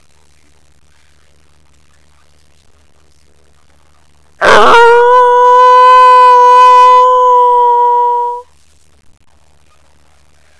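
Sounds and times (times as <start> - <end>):
wolf howling: 4.4 - 8.4.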